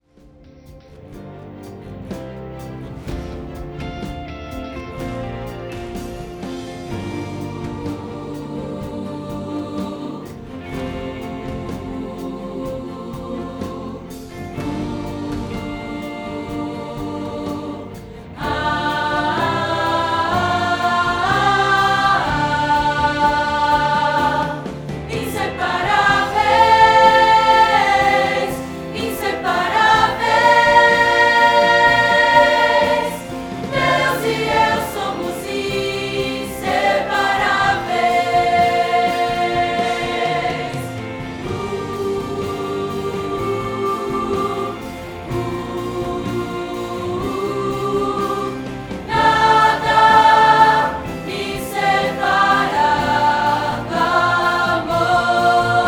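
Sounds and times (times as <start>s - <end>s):
soprano singing: 6.3s - 55.8s.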